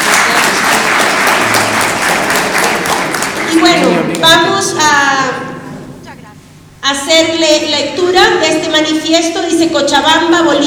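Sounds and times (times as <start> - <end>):
audience applause: 0.0 - 4.3
speech: 6.9 - 10.6.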